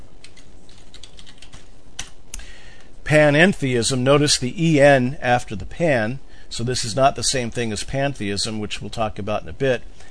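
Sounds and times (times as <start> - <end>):
typing a word on a computer keyboard: 0.2 - 2.1
speech: 3.1 - 10.0.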